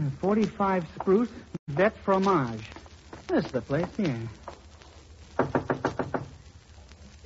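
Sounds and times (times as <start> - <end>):
speech: 0.2 - 4.4
knocking on a door: 5.4 - 6.3.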